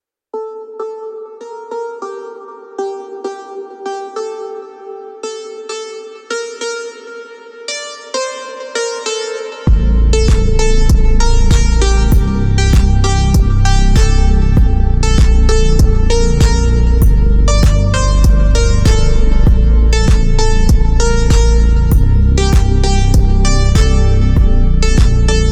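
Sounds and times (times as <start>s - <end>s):
funk music: 9.6s - 25.5s.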